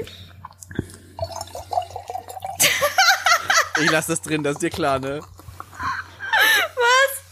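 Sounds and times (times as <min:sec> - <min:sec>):
pouring wine from a bottle into glass: 0:01.2 - 0:05.8
speech: 0:03.8 - 0:05.4.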